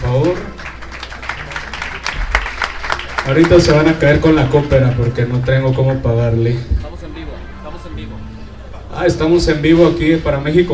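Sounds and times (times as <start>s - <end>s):
audience applause: 0.0s - 6.0s
speech: 0.2s - 0.6s, 3.3s - 6.8s, 9.0s - 10.7s.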